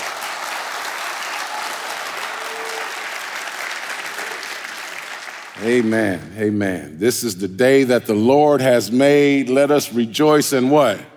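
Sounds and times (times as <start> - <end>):
round of applause: 0.0 - 5.9
speech: 5.6 - 11.1.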